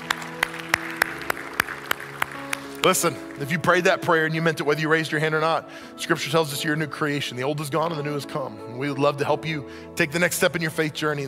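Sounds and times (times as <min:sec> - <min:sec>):
audience applause: 0:00.0 - 0:03.8
speech: 0:02.8 - 0:11.2.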